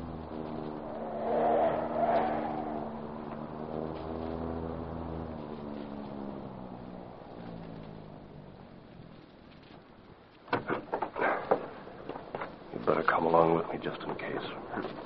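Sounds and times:
car engine humming as it slows and turns into an alley: 0:00.0 - 0:15.0
car doors clunking: 0:10.5 - 0:12.7
speech: 0:13.2 - 0:15.0.

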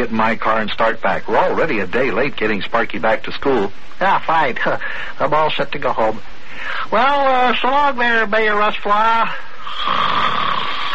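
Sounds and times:
speech: 0:00.0 - 0:10.2
man snoring in his sleep: 0:09.6 - 0:10.9.

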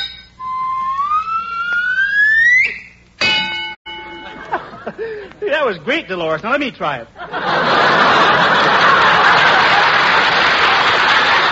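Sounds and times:
carnival strength-tester rising whistling tone: 0:00.0 - 0:03.0
carnival strength-tester bell ringing: 0:03.2 - 0:04.8
laughter: 0:04.3 - 0:05.5, 0:07.2 - 0:11.5
speech: 0:04.9 - 0:07.2.

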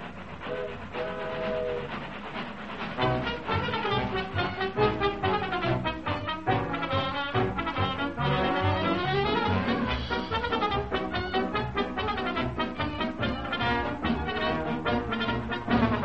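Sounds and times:
train whistle: 0:00.4 - 0:02.2, 0:03.0 - 0:16.0.

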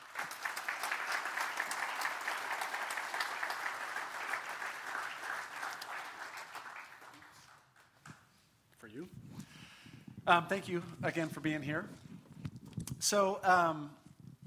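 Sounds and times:
audience applause welcoming a guest speaker: 0:00.0 - 0:08.2
speech: 0:10.3 - 0:12.0, 0:13.0 - 0:14.0.

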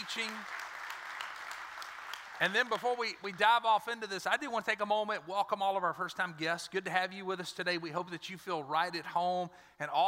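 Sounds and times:
audience clapping: 0:00.0 - 0:04.1
speech: 0:00.2 - 0:00.6, 0:02.4 - 0:10.0.

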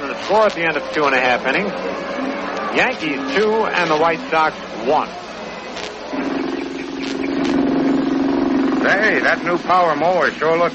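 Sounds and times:
speech: 0:00.2 - 0:05.3, 0:08.8 - 0:10.7
car engine idling and stalling: 0:06.2 - 0:10.2.

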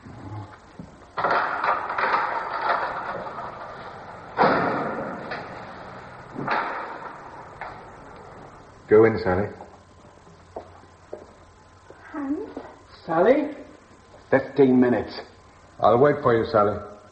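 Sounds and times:
heavy door being opened: 0:01.2 - 0:08.7
speech: 0:08.9 - 0:09.6, 0:13.1 - 0:13.6, 0:14.3 - 0:16.9.

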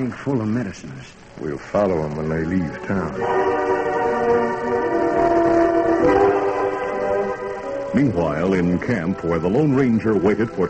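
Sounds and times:
speech: 0:00.0 - 0:03.8, 0:07.9 - 0:10.6
steam train whistle: 0:03.1 - 0:07.9.

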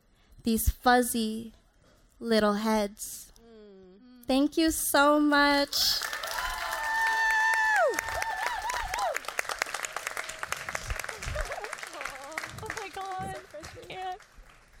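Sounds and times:
speech: 0:00.4 - 0:01.6, 0:02.2 - 0:03.3, 0:04.3 - 0:06.2
audience applause: 0:06.0 - 0:14.7.

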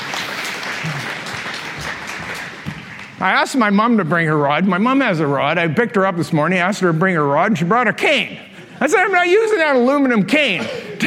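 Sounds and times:
audience applause: 0:00.0 - 0:03.2
speech: 0:03.2 - 0:11.0.

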